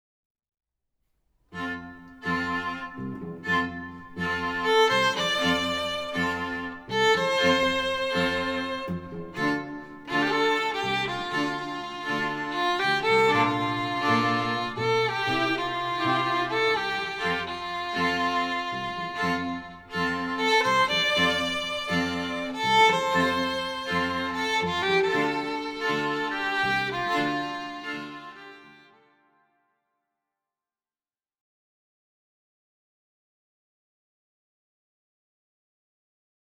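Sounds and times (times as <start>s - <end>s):
string quartet: 1.6s - 29.0s.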